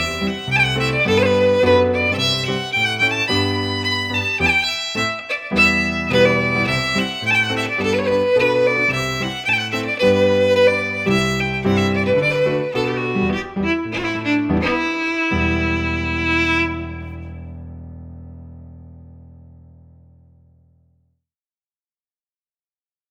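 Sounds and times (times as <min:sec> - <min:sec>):
fiddle: 0:00.0 - 0:17.7
piano: 0:00.0 - 0:20.8.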